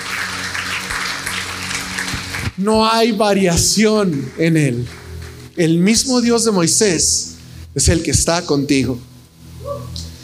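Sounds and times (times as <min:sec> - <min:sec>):
audience applause: 0:00.0 - 0:02.6, 0:04.0 - 0:05.5
speech: 0:02.6 - 0:05.0, 0:05.6 - 0:09.1.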